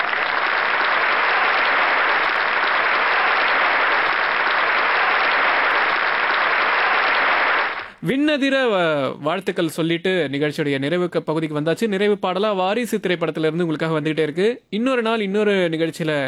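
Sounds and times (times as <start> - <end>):
audience applause for the show's participants: 0.0 - 8.0
speech: 8.3 - 16.2.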